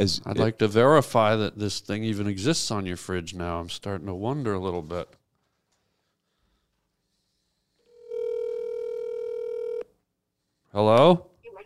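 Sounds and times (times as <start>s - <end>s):
speech: 0.0s - 5.2s, 10.8s - 11.3s
phone dialing tone while placing a call: 7.9s - 9.8s.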